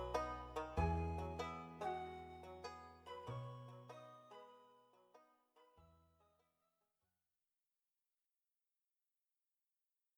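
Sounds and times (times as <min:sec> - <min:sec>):
countryside ambience: 0:00.0 - 0:05.1.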